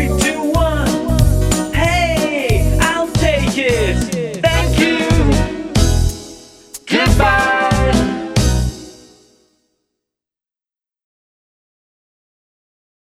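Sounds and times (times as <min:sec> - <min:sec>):
song: 0:00.0 - 0:09.4.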